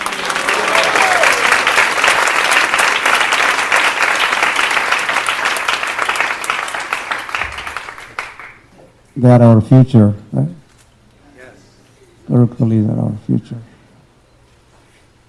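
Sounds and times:
large audience clapping to welcome the fourth battalion and Gurukul students: 0.0 - 8.7
speech: 9.2 - 10.6, 12.4 - 13.7.

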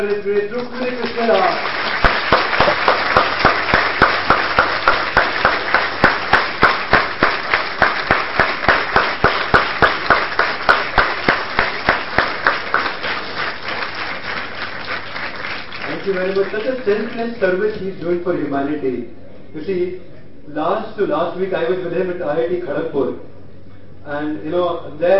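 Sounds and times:
speech: 0.0 - 1.8, 16.1 - 23.3, 24.0 - 25.1
audience applause: 0.0 - 17.3.

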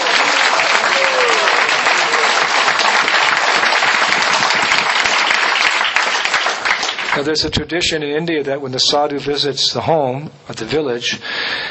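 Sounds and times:
audience applause: 0.0 - 7.3
speech: 7.2 - 11.4.

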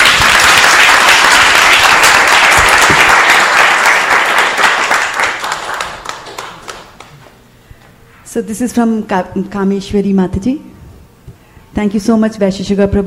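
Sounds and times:
audience applause: 0.0 - 7.2
speech: 8.4 - 10.8, 11.7 - 13.0.

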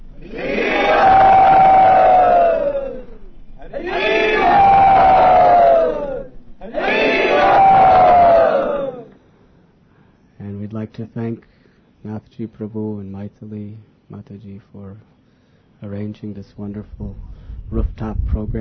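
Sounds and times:
crowd at a devotional rooftop gathering shouting in welcome: 0.2 - 9.1
speech: 12.4 - 15.2, 15.8 - 18.5.

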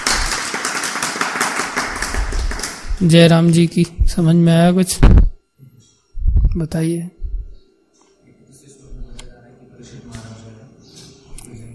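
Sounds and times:
hand clapping: 0.0 - 3.6
speech: 3.0 - 5.2, 6.6 - 7.2.

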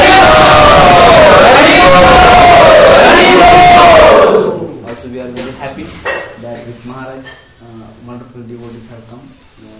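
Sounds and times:
crowd of devotees chanting loudly in unison to welcome an honoured visitor: 0.0 - 4.8.

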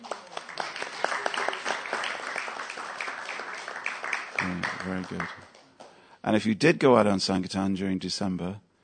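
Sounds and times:
audience applause: 0.0 - 5.6
speech: 4.5 - 5.5, 6.2 - 8.6.

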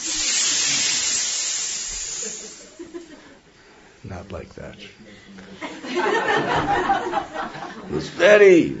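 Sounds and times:
crowd of people hissing loudly in imitation of snakes: 0.0 - 3.2
laughter: 2.2 - 3.4, 5.4 - 8.2
speech: 4.1 - 8.7.

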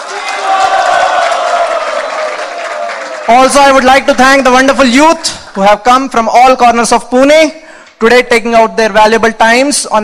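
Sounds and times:
audience applause at a youth gathering in Pune: 0.0 - 3.8
speech: 3.3 - 10.0.

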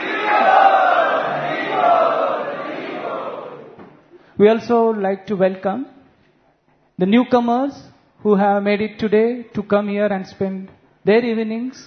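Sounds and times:
audience chanting loudly in unison to welcome a guest: 0.0 - 3.8
speech: 4.4 - 6.0, 7.0 - 11.8.

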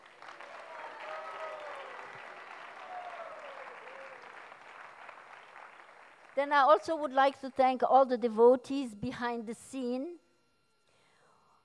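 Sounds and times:
audience applause: 0.0 - 6.4
speech: 6.4 - 10.2.

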